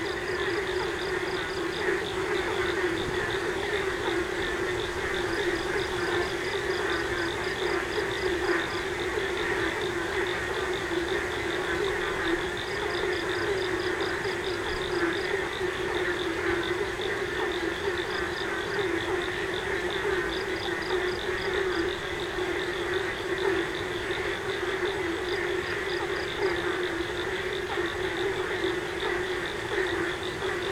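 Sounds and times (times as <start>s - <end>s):
frogs at night in Yogyakarta: 0.0s - 30.7s.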